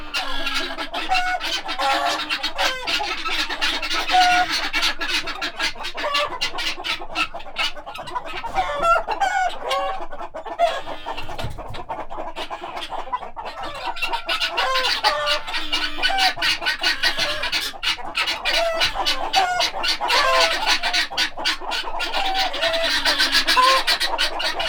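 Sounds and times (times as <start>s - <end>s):
guineafowl chattering: 0.0s - 24.6s.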